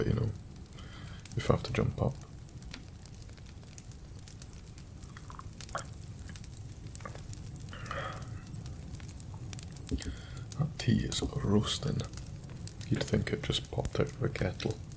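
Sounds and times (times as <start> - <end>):
speech: 0.0 - 0.5, 1.4 - 2.3, 10.9 - 12.2, 12.9 - 14.9
wood fire crackling: 0.0 - 14.9.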